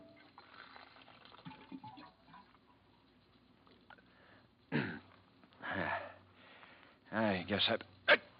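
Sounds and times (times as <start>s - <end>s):
water pouring from a water cooler: 0.0s - 4.2s
speech: 7.4s - 8.0s.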